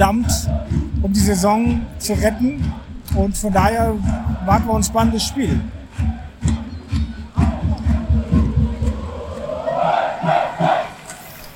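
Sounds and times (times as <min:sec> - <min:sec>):
speech: 0:00.0 - 0:05.8
clapping or drumming: 0:00.0 - 0:09.1
football fans chanting in stadium: 0:00.0 - 0:11.4.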